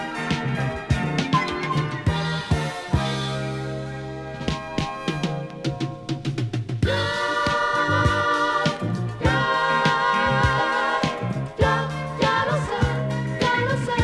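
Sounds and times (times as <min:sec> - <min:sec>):
Cuban jazz-funk disco and Brazilian soul music: 0:00.0 - 0:14.0.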